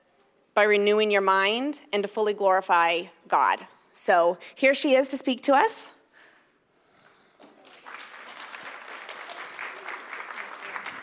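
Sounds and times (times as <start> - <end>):
speech: 0.6 - 6.0
audience applause: 7.6 - 11.0.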